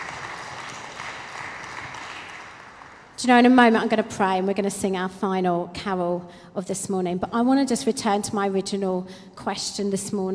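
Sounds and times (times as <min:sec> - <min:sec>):
church congregation applause at a Christmas morning service: 0:00.0 - 0:03.2
speech: 0:03.2 - 0:10.3.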